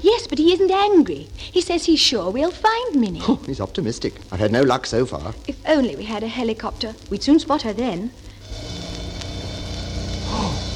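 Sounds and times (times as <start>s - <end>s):
speech: 0.0s - 8.7s
flying saucer mechanical drone with low throbbing pulse: 8.4s - 10.7s.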